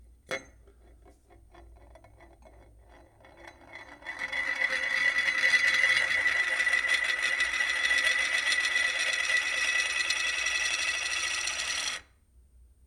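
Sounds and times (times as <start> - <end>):
tin cap rolling: 2.0 - 12.0.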